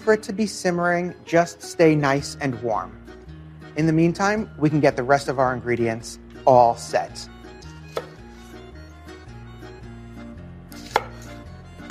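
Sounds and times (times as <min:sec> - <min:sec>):
music: 0:00.0 - 0:11.9
speech: 0:00.1 - 0:03.1, 0:03.8 - 0:07.3
knife chopping shallots on a cutting board: 0:07.8 - 0:08.4, 0:10.7 - 0:11.9.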